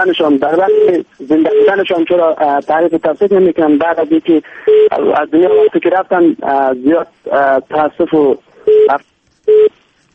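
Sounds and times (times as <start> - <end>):
speech: 0.0 - 9.7
telephone line tone after a call is cut off: 0.5 - 1.8, 4.7 - 5.8, 8.6 - 9.8.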